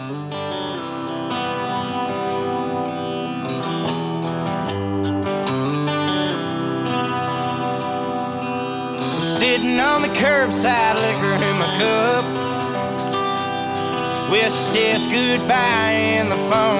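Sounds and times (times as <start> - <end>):
band's instrumental rock track with distorted electric guitars: 0.0 - 16.7
thick distorted electric guitars: 0.0 - 16.7
speech: 9.5 - 12.4, 14.3 - 16.7.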